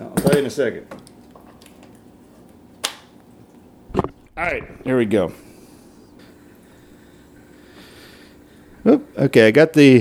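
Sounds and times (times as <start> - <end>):
speech: 0.0 - 1.0, 4.4 - 5.4, 8.8 - 10.0
CO2 gas hiss: 5.1 - 10.0.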